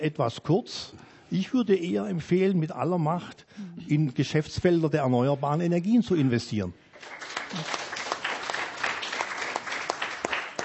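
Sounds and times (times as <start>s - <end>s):
speech: 0.0s - 7.8s
audience applause: 7.0s - 10.6s.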